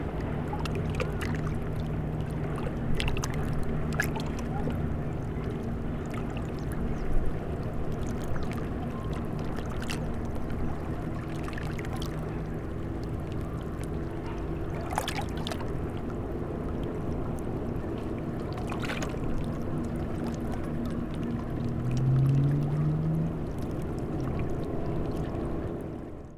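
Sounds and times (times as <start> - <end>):
small motor boats passing at a harbor entrance: 0.0 - 26.3
small waves at a harbor entrance: 0.0 - 26.3.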